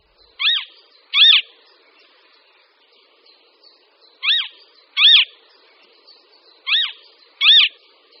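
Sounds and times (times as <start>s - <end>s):
Western marsh harrier calling: 0.2s - 2.4s, 3.2s - 8.1s.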